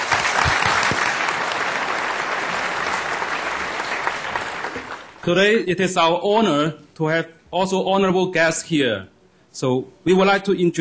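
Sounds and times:
audience applause: 0.0 - 5.3
speech: 5.2 - 10.7.

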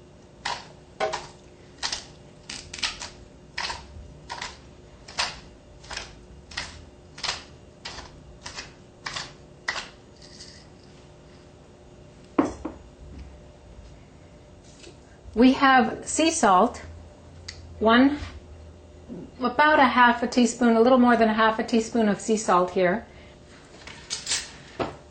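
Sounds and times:
pepper mill grinding fresh pepper: 0.4 - 10.9
speech: 15.4 - 16.9, 17.8 - 18.3, 19.5 - 23.1.

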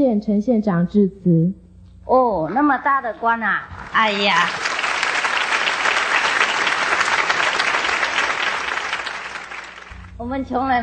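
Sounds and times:
speech: 0.0 - 4.7, 10.2 - 10.8
audience applause at a ceremony with guest speeches: 3.7 - 10.1.

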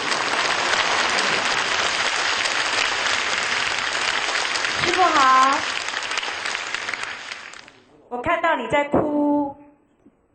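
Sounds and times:
warm audience applause: 0.0 - 7.9
speech: 8.6 - 9.2.

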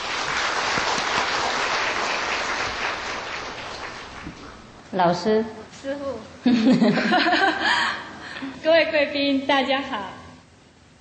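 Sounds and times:
audience applause: 0.0 - 4.7
speech: 4.9 - 10.2
laughter: 6.5 - 8.2.

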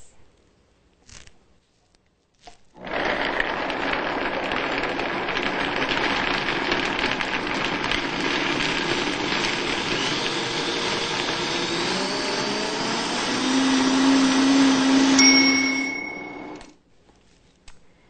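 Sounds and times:
lidded blender on high blending vegan cheese mixture: 2.8 - 16.7.

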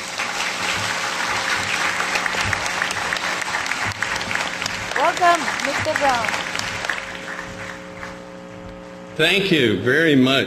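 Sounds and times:
audience applause: 0.0 - 8.3
speech: 5.0 - 6.5, 9.2 - 10.4.

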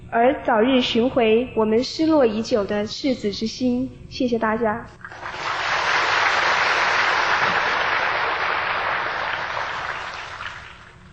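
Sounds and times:
speech: 0.1 - 5.4
audience applause: 5.2 - 10.8.

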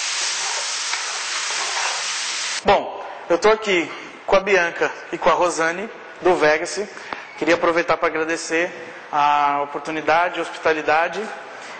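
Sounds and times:
food frying in a pan on residual heat: 0.0 - 2.6
speech: 2.6 - 11.7.

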